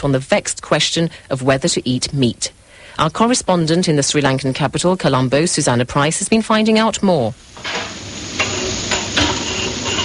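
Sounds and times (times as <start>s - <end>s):
speech: 0.0s - 8.1s
vegetarian food sizzling and frying in the Indo Ceylon Cafe kitchen: 7.2s - 10.0s
stirring utensils clinking against pans: 7.6s - 10.0s.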